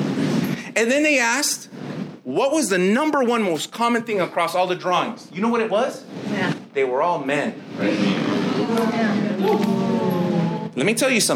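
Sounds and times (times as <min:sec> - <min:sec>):
speech: 0:00.8 - 0:09.8, 0:10.8 - 0:11.3
audience booing: 0:07.8 - 0:10.8.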